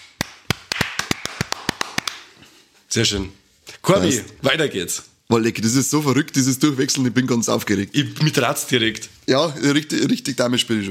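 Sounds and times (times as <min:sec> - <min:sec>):
applause: 0:00.0 - 0:02.3
speech: 0:02.9 - 0:10.8.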